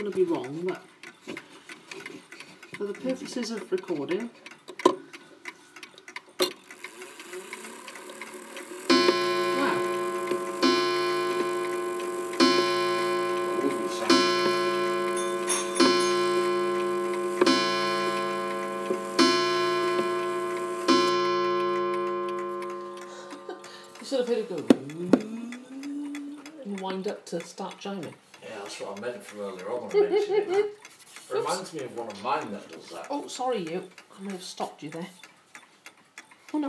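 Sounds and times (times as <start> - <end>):
speech: 0.0 - 1.5, 2.8 - 4.5, 27.0 - 30.8, 31.4 - 35.3
clock ticking with soft clicks: 0.0 - 36.6
resonant clock chime strikes: 8.1 - 24.7
laughter: 29.8 - 30.8.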